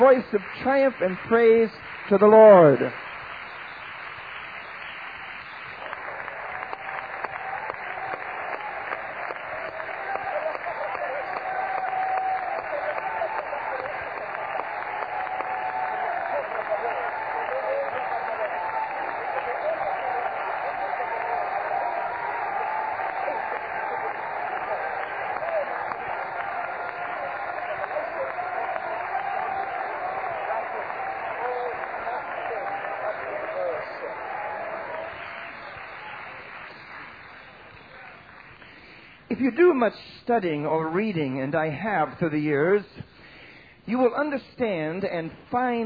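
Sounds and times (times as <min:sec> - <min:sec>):
speech: 0:00.0 - 0:03.0, 0:39.5 - 0:43.0, 0:43.9 - 0:45.8
audience clapping hands: 0:00.0 - 0:39.8.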